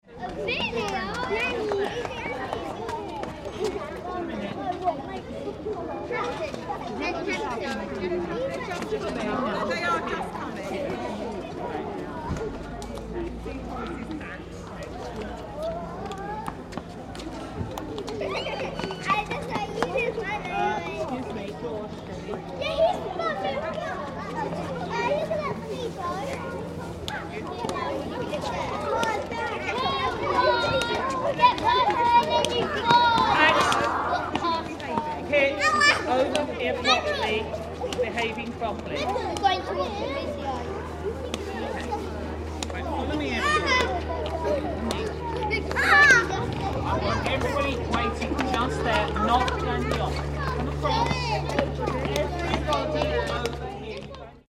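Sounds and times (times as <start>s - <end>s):
primary school children waiting in line: 0.0s - 54.4s.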